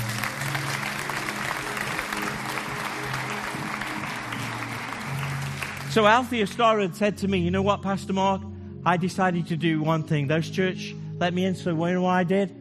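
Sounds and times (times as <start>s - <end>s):
audience applause: 0.0s - 6.4s
speech: 6.0s - 12.6s.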